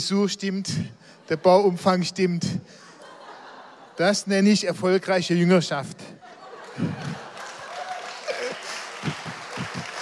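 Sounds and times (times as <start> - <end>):
speech: 0.0 - 2.9, 4.0 - 6.2, 6.8 - 7.2
laughter: 1.3 - 4.4, 6.0 - 10.0
audience applause: 6.6 - 10.0.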